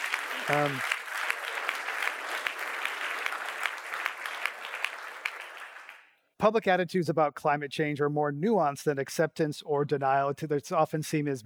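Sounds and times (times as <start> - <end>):
audience applause: 0.0 - 6.1
speech: 0.5 - 0.9, 6.4 - 11.4.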